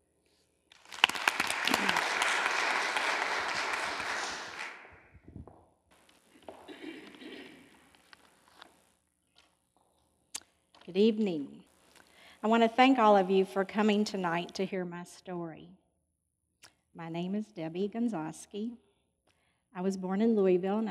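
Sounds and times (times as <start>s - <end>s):
audience applause welcoming a speaker: 0.8s - 5.0s
speech: 10.9s - 11.6s, 12.4s - 15.8s, 17.0s - 18.9s, 19.7s - 20.8s.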